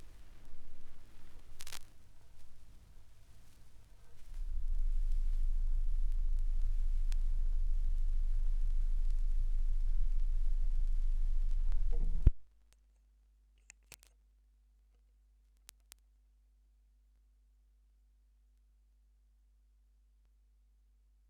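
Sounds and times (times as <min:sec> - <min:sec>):
vinyl record noise: 0:00.0 - 0:12.4.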